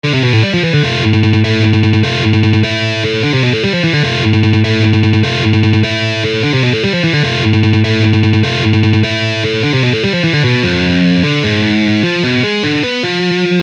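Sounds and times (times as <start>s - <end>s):
musical lick: 0.0s - 13.6s.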